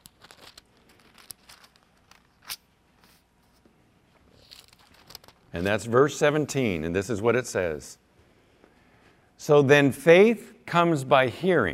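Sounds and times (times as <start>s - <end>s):
thin Bible pages rustling and flipping as they are turned: 0.0s - 6.1s
speech: 5.5s - 8.0s, 9.5s - 11.7s.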